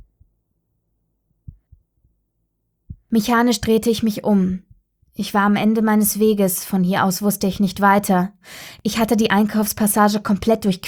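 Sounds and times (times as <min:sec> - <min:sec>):
heartbeat thumping: 0:01.4 - 0:01.9, 0:02.9 - 0:03.4
speech: 0:03.1 - 0:10.8.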